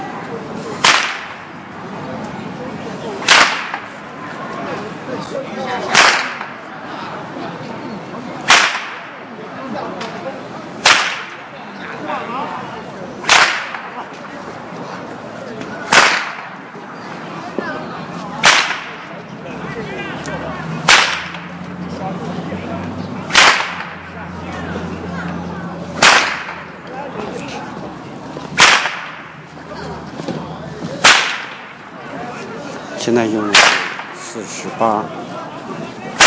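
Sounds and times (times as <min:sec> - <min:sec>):
whip cracked by an old man in a park: 0:00.8 - 0:01.5, 0:03.2 - 0:03.9, 0:05.9 - 0:06.6, 0:08.5 - 0:09.2, 0:10.8 - 0:11.4, 0:13.2 - 0:14.0, 0:15.9 - 0:16.6, 0:18.4 - 0:19.1, 0:20.8 - 0:21.6, 0:23.3 - 0:24.1, 0:26.0 - 0:26.8, 0:28.6 - 0:29.4, 0:31.0 - 0:31.8, 0:33.5 - 0:34.2
speech: 0:33.0 - 0:33.6, 0:34.6 - 0:35.2.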